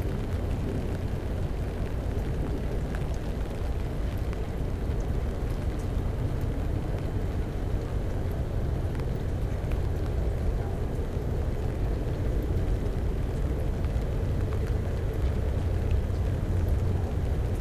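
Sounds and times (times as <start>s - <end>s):
airplane: 0.0s - 17.6s
rain: 0.0s - 17.6s
train: 7.8s - 17.6s.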